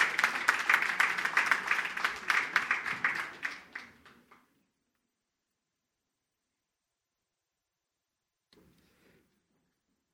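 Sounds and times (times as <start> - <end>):
audience applauding in a large room: 0.0 - 4.5.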